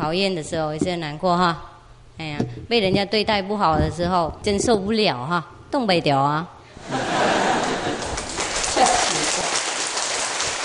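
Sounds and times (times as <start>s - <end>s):
speech: 0.0s - 7.2s
laughter: 6.8s - 9.7s
audience applause: 7.4s - 10.6s.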